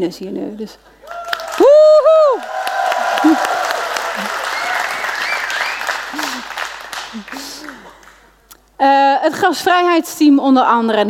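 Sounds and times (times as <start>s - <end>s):
speech: 0.0s - 3.6s, 4.2s - 4.4s, 7.1s - 8.0s, 8.8s - 11.0s
loud audience applause: 1.0s - 8.3s.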